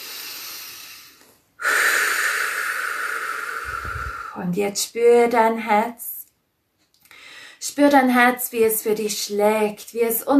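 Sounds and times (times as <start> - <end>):
deep breathing during a guided relaxation exercise: 0.0 - 4.4
speech: 4.4 - 6.1, 7.8 - 10.3.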